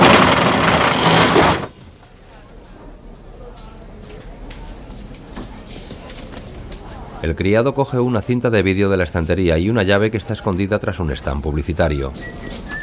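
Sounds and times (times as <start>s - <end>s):
metal roller shutter pulled down over the front of a video rental shop: 0.0s - 1.8s
speech: 7.2s - 12.7s.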